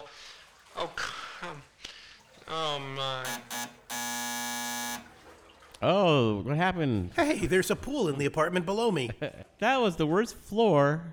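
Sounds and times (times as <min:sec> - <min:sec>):
speech: 0:00.8 - 0:01.6, 0:02.5 - 0:03.5, 0:05.8 - 0:11.1
door entry buzzer: 0:03.0 - 0:05.2.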